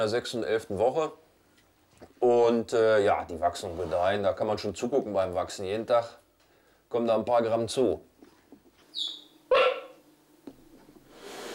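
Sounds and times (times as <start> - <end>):
speech: 0.0 - 1.2, 2.2 - 6.2, 6.9 - 8.1, 9.0 - 9.2
soft hiss of noise: 0.0 - 11.5
cheetah cubs chirping like birds: 8.9 - 10.0.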